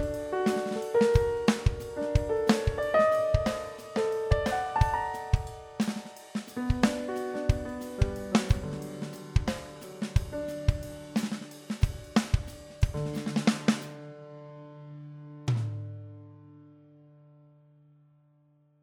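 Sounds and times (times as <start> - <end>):
improvised music: 0.0 - 14.0.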